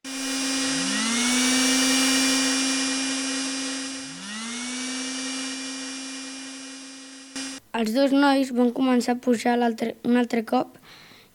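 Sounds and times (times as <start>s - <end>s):
vacuum cleaner running: 0.0s - 7.6s
speech: 7.7s - 11.3s.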